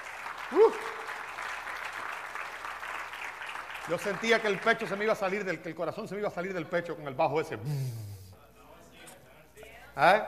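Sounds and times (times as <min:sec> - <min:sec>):
audience applause: 0:00.0 - 0:05.4
person whooping: 0:00.4 - 0:01.2
speech: 0:00.5 - 0:01.0, 0:03.9 - 0:08.2, 0:10.0 - 0:10.2.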